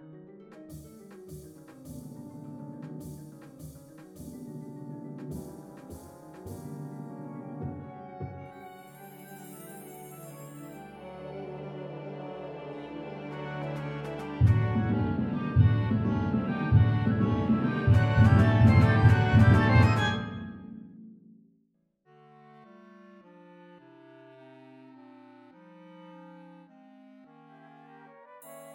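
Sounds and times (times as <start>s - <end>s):
MIDI realization music: 0.7s - 20.6s.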